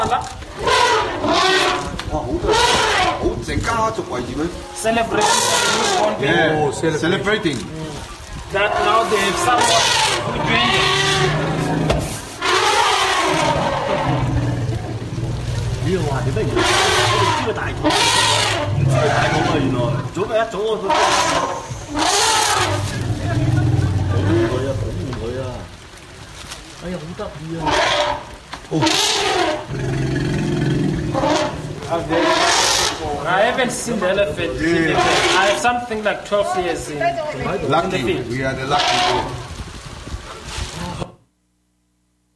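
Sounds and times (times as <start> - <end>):
elephants gathering and trumpeting: 0.0 - 3.4, 5.0 - 6.7, 8.6 - 25.5, 27.6 - 33.6, 34.7 - 35.7, 37.6 - 39.5
speech: 3.8 - 7.8, 8.5 - 11.4, 15.9 - 22.1, 26.8 - 30.4, 31.2 - 39.5.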